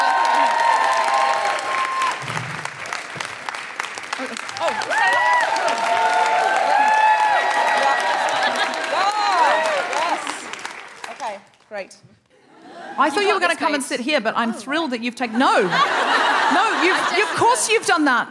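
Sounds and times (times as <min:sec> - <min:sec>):
audience clapping: 0:00.0 - 0:12.0
laughter: 0:07.7 - 0:10.3, 0:15.3 - 0:18.0
speech: 0:13.0 - 0:18.2.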